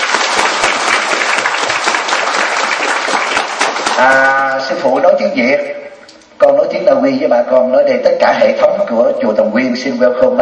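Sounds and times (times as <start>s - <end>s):
audience at a Vietnamese temple gathering applauding a Buddhist disciple from Norway: 0.0s - 4.6s
speech: 4.0s - 5.8s, 6.4s - 10.4s.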